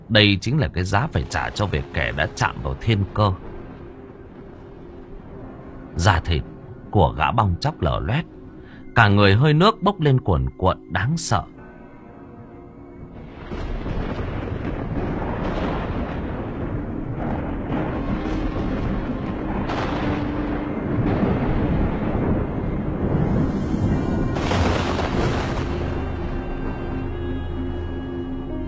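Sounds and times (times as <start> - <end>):
speech: 0.1 - 3.5, 6.0 - 8.4, 9.0 - 11.5
thunder and lightning strikes: 0.9 - 6.5, 13.0 - 28.5.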